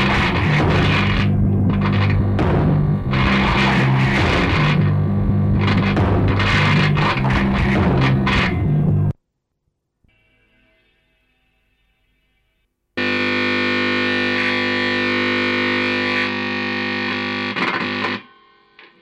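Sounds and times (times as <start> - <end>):
guitar: 0.0 - 9.2, 13.0 - 18.9.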